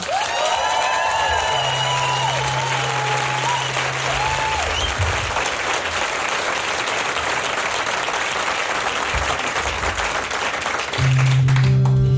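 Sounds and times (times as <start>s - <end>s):
high whoops: 0.0s - 5.4s
cheering and whistles: 0.0s - 5.5s
large crowd applause: 0.0s - 12.0s.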